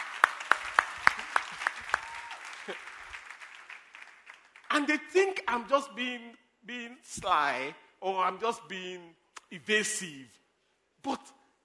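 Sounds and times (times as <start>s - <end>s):
audience clapping: 0.0s - 5.0s
speech: 2.7s - 2.9s, 4.8s - 10.4s, 11.0s - 11.4s.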